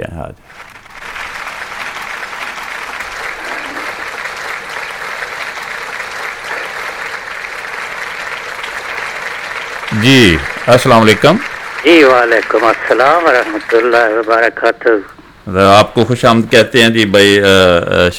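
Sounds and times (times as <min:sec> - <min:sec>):
speech: 0:00.0 - 0:00.7, 0:09.9 - 0:18.1
applause welcoming a guest: 0:00.5 - 0:15.0.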